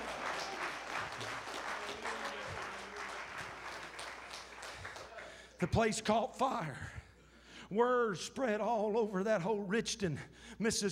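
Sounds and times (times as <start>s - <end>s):
audience clapping hands in praise: 0.0s - 5.6s
speech: 5.6s - 7.0s, 7.7s - 10.9s.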